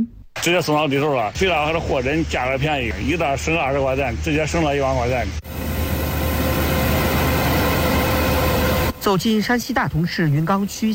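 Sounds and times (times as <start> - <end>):
speech: 0.4 - 5.7, 9.0 - 10.9
combine harvester working at full power in a golden corn field: 1.3 - 9.4.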